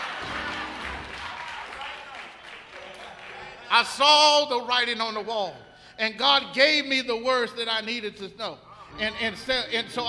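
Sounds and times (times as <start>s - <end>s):
audience clapping: 0.0s - 3.8s
speech: 3.7s - 10.0s.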